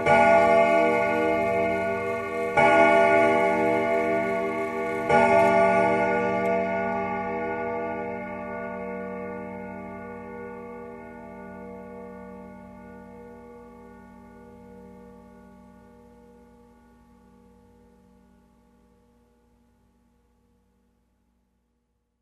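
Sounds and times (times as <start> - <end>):
grandfather clock striking: 0.0 - 13.1
grandfather clock bells: 0.0 - 18.8.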